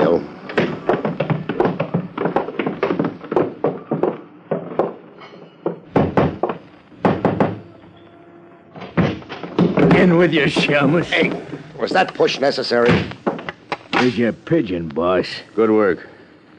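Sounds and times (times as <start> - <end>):
footsteps going down wooden cellar steps: 0.0 - 6.7, 9.0 - 11.3
speech: 10.1 - 13.2, 14.0 - 16.1.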